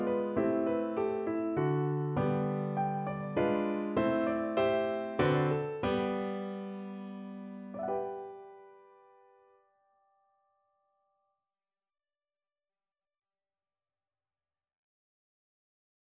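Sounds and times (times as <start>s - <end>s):
waltz music: 0.0s - 8.6s.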